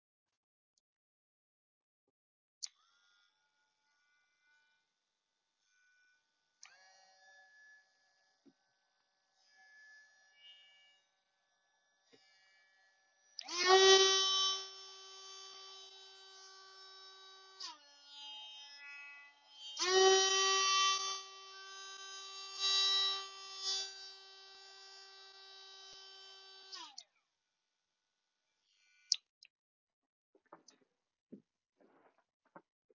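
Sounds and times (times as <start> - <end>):
Dremel rotary tool: 12.1 - 27.0.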